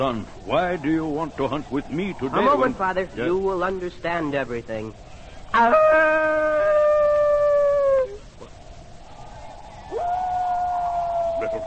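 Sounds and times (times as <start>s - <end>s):
speech: 0.0s - 6.7s
human voice imitating a wolf howl: 5.6s - 8.4s, 9.9s - 11.6s.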